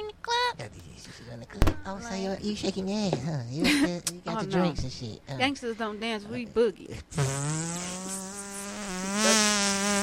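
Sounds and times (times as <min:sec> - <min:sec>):
speech: 0:01.4 - 0:07.9
fart sound made with the mouth: 0:07.2 - 0:10.0.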